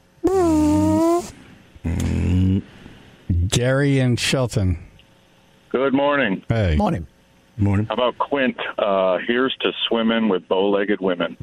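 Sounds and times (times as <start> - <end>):
fart: 0.2 - 2.6
speech: 3.6 - 4.9, 5.7 - 11.4.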